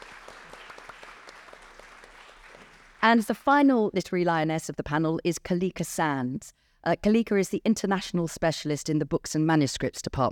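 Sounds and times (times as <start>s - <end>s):
audience applause: 0.0s - 3.1s
speech: 3.0s - 10.2s.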